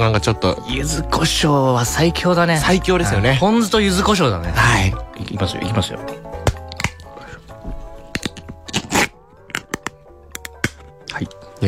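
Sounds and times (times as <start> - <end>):
speech: 0.0 - 6.2
yakitori tin lid peeling back with a rasping tear: 6.3 - 11.1
yakitori tin lid cracking and clicking: 6.4 - 7.3, 8.1 - 11.3.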